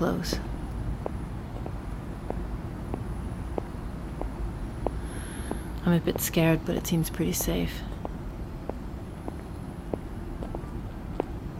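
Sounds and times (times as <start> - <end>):
speech: 0.0 - 0.5, 5.9 - 7.9
faint park outdoor background: 0.0 - 11.5
man's footsteps approaching in a park: 0.2 - 11.5.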